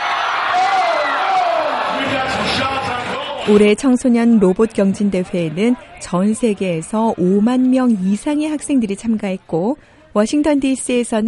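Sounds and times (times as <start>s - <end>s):
crowd cheering at robot competition: 0.0s - 9.8s
speech: 3.5s - 11.2s.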